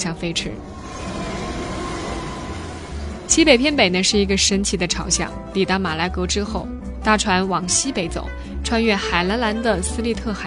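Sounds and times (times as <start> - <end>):
speech: 0.0 - 1.1, 3.4 - 10.4
rumbling steam train: 0.0 - 5.6.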